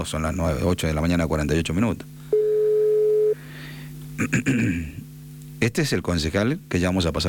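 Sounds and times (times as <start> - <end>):
speech: 0.0 - 2.4, 4.2 - 5.0, 5.6 - 7.2
telephone ring tone on a call to a city councillor: 2.3 - 3.4.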